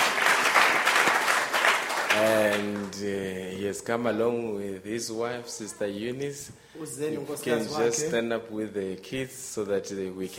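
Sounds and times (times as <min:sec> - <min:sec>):
church congregation applause: 0:00.0 - 0:03.0
speech: 0:02.2 - 0:10.3.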